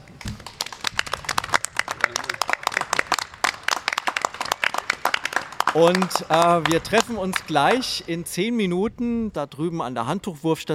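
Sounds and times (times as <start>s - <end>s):
audience applause: 0.2s - 8.0s
speech: 5.8s - 10.7s.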